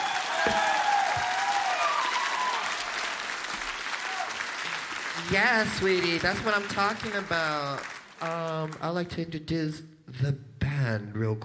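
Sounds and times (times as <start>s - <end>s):
audience applause: 0.0s - 8.9s
speech: 5.3s - 11.4s.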